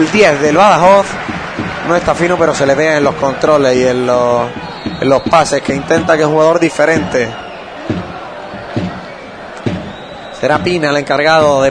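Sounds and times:
speech: 0.0 - 1.3, 1.9 - 7.4, 10.4 - 11.6
football stadium crowd jeering a referee's decision: 0.0 - 11.6.

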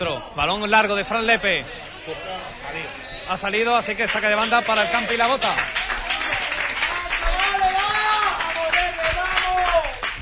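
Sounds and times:
speech: 0.0 - 5.8
Punta Umbría football fans' voices: 0.0 - 9.4
Punta Umbría football fans clapping: 3.8 - 10.1.

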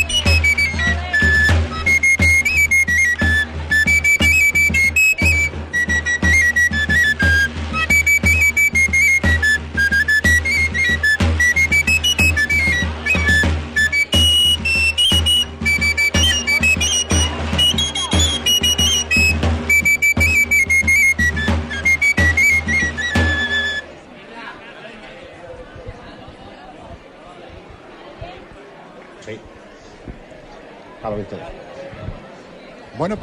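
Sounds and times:
tamborileros playing pipe and tabor drum: 0.0 - 24.0.

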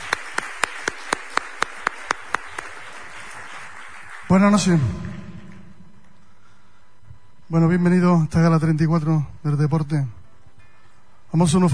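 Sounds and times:
audience applause: 0.0 - 5.6
speech: 4.3 - 5.2, 7.5 - 10.2, 11.3 - 11.7.

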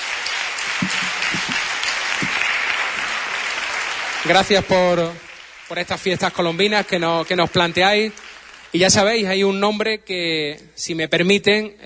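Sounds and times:
audience applause: 0.0 - 8.8
speech: 4.3 - 11.8.

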